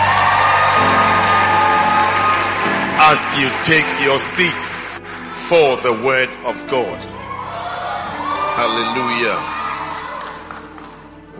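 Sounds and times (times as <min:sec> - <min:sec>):
audience clapping and cheering: 0:00.0 - 0:06.1, 0:08.1 - 0:11.3
speech: 0:03.1 - 0:07.2, 0:08.6 - 0:09.6.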